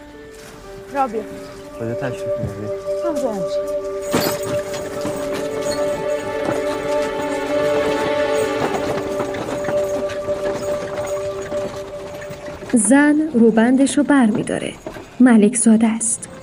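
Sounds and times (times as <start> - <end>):
sustained droning tone: 0.0 - 15.2
hooves of a horse-drawn carriage clip-clopping: 0.0 - 16.4
speech: 0.9 - 4.7, 12.7 - 16.3.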